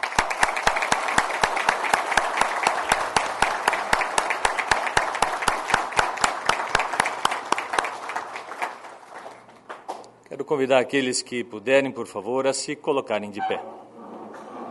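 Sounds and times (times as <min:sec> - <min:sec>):
strong round of applause: 0:00.0 - 0:10.1
speech: 0:10.4 - 0:13.8.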